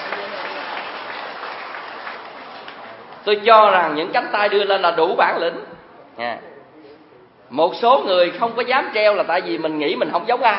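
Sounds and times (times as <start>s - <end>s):
audience applause at a Buddhist teaching: 0.0s - 3.2s
speech: 3.2s - 6.5s, 7.5s - 10.5s.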